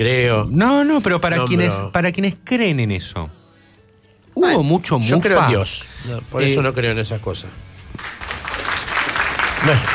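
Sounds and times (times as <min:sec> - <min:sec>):
speech: 0:00.0 - 0:03.4, 0:04.4 - 0:08.2, 0:09.6 - 0:09.9
studio audience applause on a Spanish-language talk show: 0:08.0 - 0:09.9.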